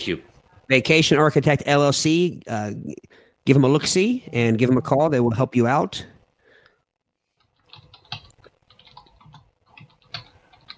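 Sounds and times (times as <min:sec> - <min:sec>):
speech: 0:00.0 - 0:06.1
typing on a keyboard: 0:07.4 - 0:10.7.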